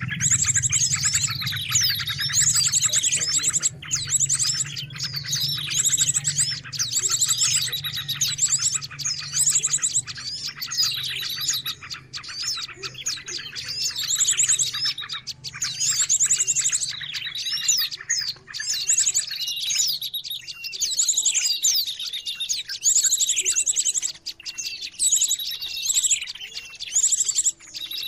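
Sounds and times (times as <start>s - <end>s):
low hum: 0.0s - 11.6s
bird chatter: 0.0s - 28.0s.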